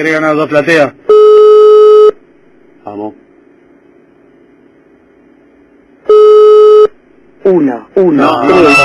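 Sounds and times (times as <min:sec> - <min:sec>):
speech: 0:00.0 - 0:01.1, 0:02.8 - 0:03.2, 0:07.5 - 0:08.8
telephone line tone from an unanswered call to a cell phone: 0:01.1 - 0:02.2, 0:06.1 - 0:07.0.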